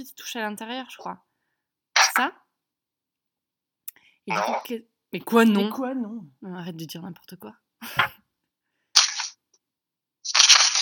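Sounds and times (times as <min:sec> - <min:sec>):
speech: 0:00.0 - 0:01.3, 0:02.1 - 0:02.4, 0:04.2 - 0:08.1
sheets of paper sliding against each other: 0:09.0 - 0:09.4, 0:10.3 - 0:10.8.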